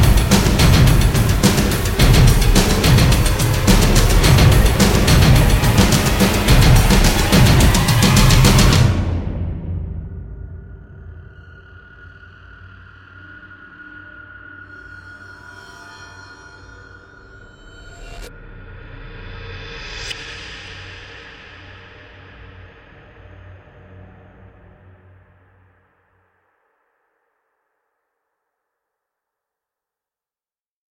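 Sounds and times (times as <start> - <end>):
drum effects: 0.0 - 10.5.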